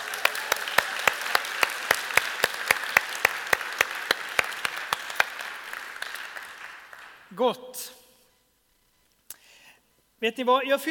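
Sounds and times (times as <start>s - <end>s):
audience applause: 0.0s - 7.3s
speech: 7.4s - 8.0s, 10.2s - 10.8s.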